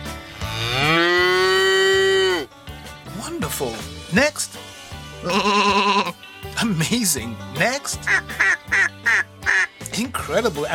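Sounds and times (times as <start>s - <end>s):
cow mooing: 0.3s - 2.5s, 5.2s - 6.1s
speech: 3.5s - 9.3s, 10.0s - 10.7s.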